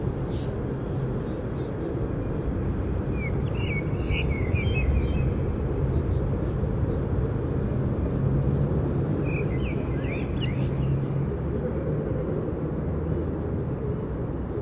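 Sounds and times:
outdoor traffic rumble: 0.0 - 14.6
birds chirping: 1.2 - 6.6, 9.2 - 11.6.

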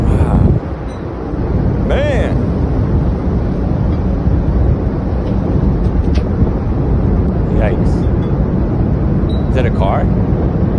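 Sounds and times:
wind blowing: 0.0 - 10.7.

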